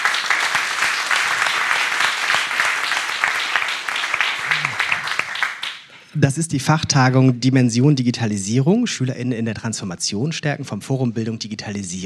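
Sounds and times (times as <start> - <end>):
crowd applauding: 0.0 - 5.9
speech: 6.2 - 12.0.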